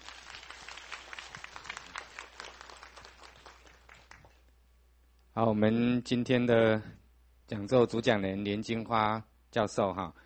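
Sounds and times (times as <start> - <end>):
audience applause: 0.0 - 4.4
speech: 5.4 - 10.2.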